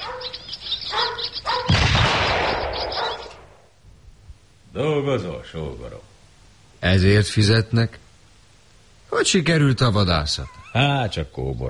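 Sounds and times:
gunshots fired at starlings: 0:01.7 - 0:03.6
speech: 0:04.8 - 0:06.2, 0:06.8 - 0:08.0, 0:09.1 - 0:11.6.

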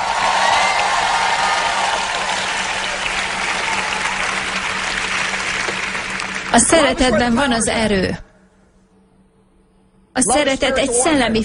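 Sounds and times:
faint cheering: 0:00.0 - 0:06.0
audience applause: 0:00.0 - 0:07.0
speech: 0:06.6 - 0:08.3, 0:10.2 - 0:11.4.

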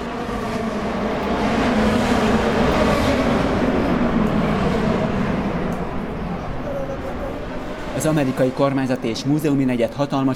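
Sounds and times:
800-horsepower race car engines roaring: 0:00.0 - 0:10.3
speech: 0:08.0 - 0:10.3.

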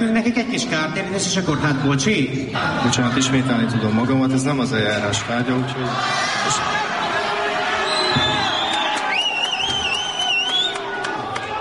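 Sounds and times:
speech: 0:00.0 - 0:07.0
laughter: 0:01.7 - 0:04.6
audience applause: 0:07.2 - 0:11.5
thin high whistling: 0:07.8 - 0:10.9.

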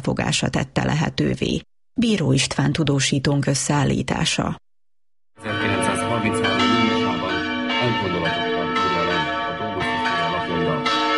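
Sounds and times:
speech: 0:00.0 - 0:04.6
church bell of Madéfalva ringing: 0:05.4 - 0:11.1.

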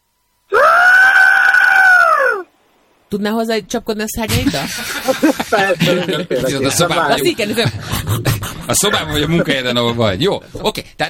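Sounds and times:
person imitating a pterosaur's screech: 0:00.5 - 0:02.5
speech: 0:03.1 - 0:11.0
laughter: 0:04.3 - 0:10.0.

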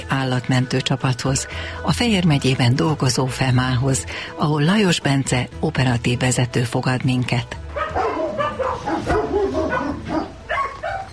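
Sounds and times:
speech: 0:00.1 - 0:07.6
large dog barking: 0:07.7 - 0:11.1.

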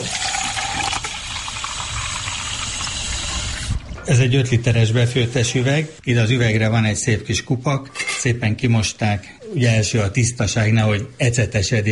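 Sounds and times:
tap water being poured: 0:00.0 - 0:05.2
speech: 0:04.1 - 0:11.9.

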